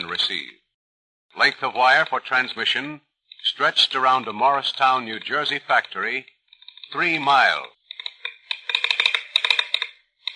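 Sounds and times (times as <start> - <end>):
speech: 0.1 - 0.6, 1.3 - 6.3, 6.9 - 7.8
telegraph key clicking: 7.6 - 10.3.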